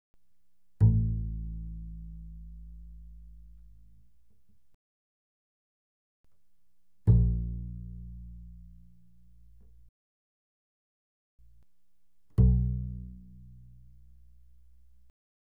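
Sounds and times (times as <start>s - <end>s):
double bass pizzicato fortissimo on the A string: 0.7s - 4.5s, 7.0s - 9.9s, 11.4s - 15.1s.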